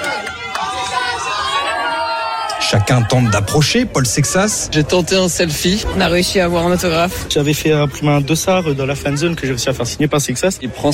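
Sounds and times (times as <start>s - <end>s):
shouts: 0.0s - 3.6s
crowd of fans chattering around a team bus: 0.0s - 10.9s
speech: 2.7s - 10.9s.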